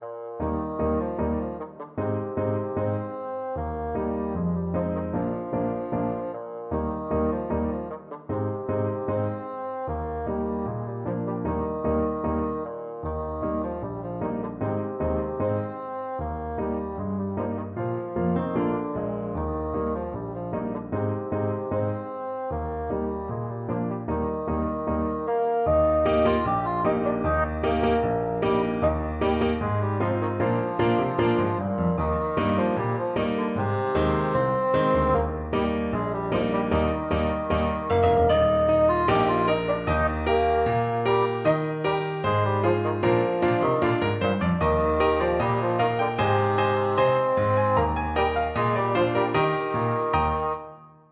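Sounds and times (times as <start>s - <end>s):
bassoon: 0.0s - 50.9s.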